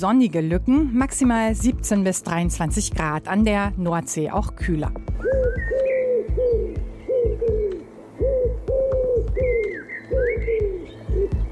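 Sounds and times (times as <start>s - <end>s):
speech: 0.0s - 5.7s
pigeon cooing: 5.2s - 11.5s.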